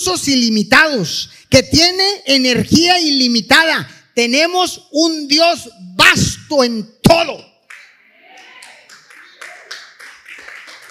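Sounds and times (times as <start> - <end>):
speech: 0.0 - 7.5
audience applauding: 7.7 - 10.9.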